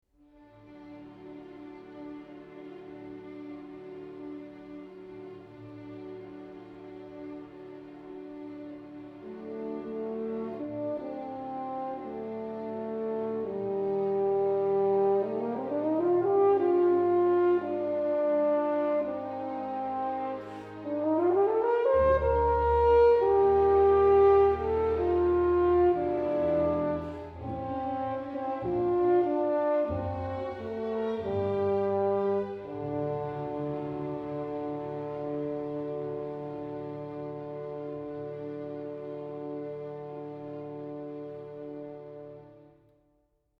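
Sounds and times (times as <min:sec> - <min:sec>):
suite for horn: 0:09.1 - 0:42.8.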